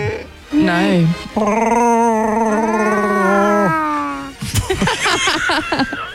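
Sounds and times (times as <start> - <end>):
person's voice imitating a growling alien creature: 0.0 - 0.3, 1.4 - 4.4
speech: 0.5 - 1.9
laughter: 4.4 - 6.1.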